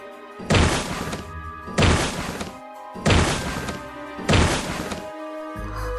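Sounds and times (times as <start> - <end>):
heavy footsteps of a giant creature: 0.5 - 5.1.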